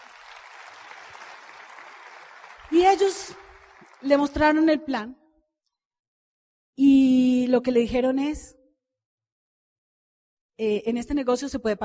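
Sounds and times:
audience applause: 0.0 - 4.5
speech: 2.7 - 3.4, 4.0 - 5.2, 6.8 - 8.6, 10.6 - 11.8.

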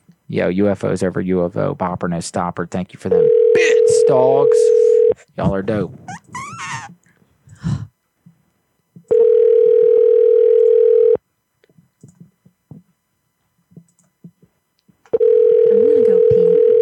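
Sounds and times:
speech: 0.3 - 6.4
telephone ringing tone during outgoing call: 3.2 - 5.2, 9.1 - 11.2, 15.2 - 16.8.

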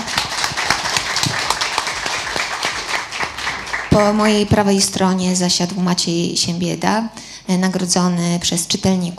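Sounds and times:
audience applause: 0.0 - 4.4
speech: 4.0 - 9.1.

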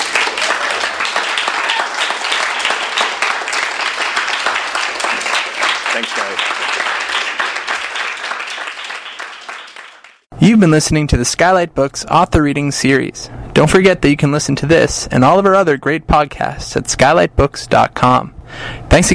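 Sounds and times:
audience applause: 0.0 - 10.3
speech: 10.4 - 19.1.

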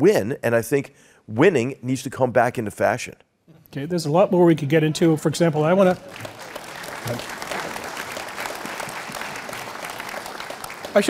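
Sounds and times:
speech: 0.0 - 6.4, 7.0 - 7.4
audience clapping: 5.4 - 11.0.

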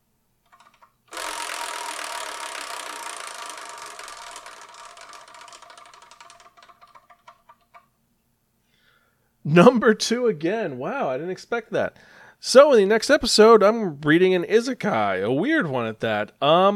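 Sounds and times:
spun wheel clicking: 0.4 - 7.9
speech: 9.5 - 16.7.

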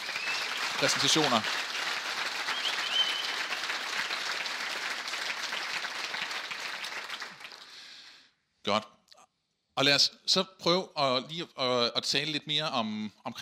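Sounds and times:
live audience applause: 0.0 - 7.9
speech: 0.8 - 1.7, 8.7 - 8.9, 9.8 - 13.4.

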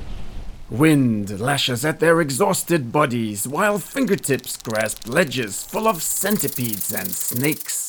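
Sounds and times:
speech: 0.7 - 7.8
carnivorous parakeets screeching while dive-bombing: 3.4 - 7.8.

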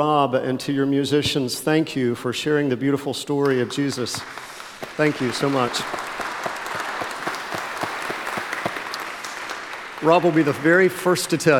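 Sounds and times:
speech: 0.0 - 6.0, 10.0 - 11.5
audience applause: 3.6 - 11.5.

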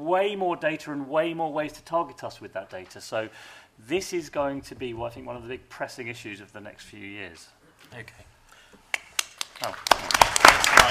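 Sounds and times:
speech: 0.0 - 8.3, 9.6 - 10.9
audience clapping: 8.9 - 10.9.

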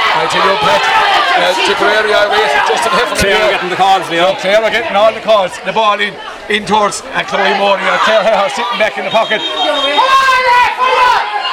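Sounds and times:
irate hurling crowd shouting at referee: 0.0 - 11.5
speech: 0.3 - 10.2.

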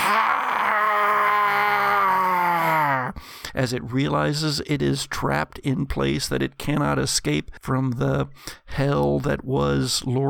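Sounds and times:
monster howl: 0.0 - 3.1
speech: 3.6 - 10.2.

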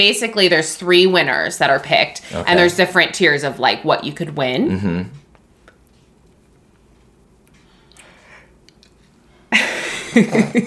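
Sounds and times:
speech: 0.0 - 5.2, 10.2 - 10.6
person yawning: 2.3 - 2.7.

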